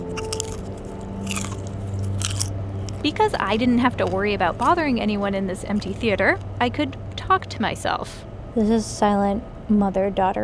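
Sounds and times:
popcorn chewing in an empty movie theater: 0:00.0 - 0:06.2
air handling hum in an empty movie theater: 0:00.0 - 0:10.4
speech: 0:03.0 - 0:10.4.

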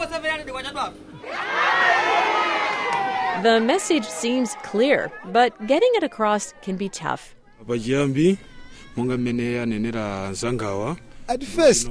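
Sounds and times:
speech: 0:00.0 - 0:01.5, 0:03.4 - 0:11.8
audience hooting and cheering at a play: 0:01.2 - 0:07.3.

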